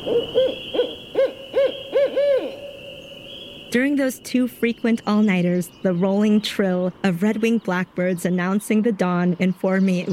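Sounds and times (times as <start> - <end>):
barred owl caterwauling calls: 0.0 - 4.2
speech: 3.7 - 10.1.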